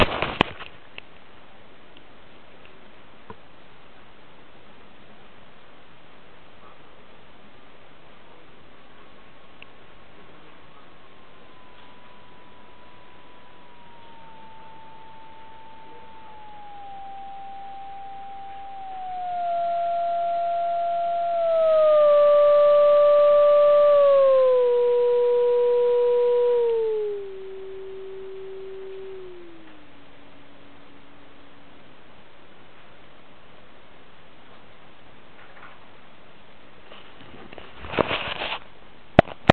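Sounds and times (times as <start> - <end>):
QCX mini 550Hz filter tone: 0.0 - 0.5, 10.6 - 33.4.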